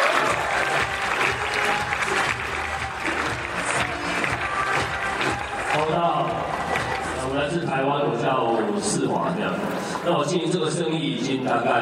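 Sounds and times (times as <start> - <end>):
audience applause: 0.0 - 7.5
speech: 8.4 - 11.8.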